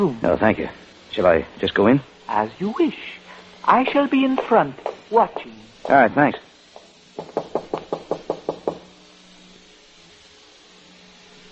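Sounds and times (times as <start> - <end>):
speech: 0.0 - 6.4
knocking on a door: 7.2 - 8.9.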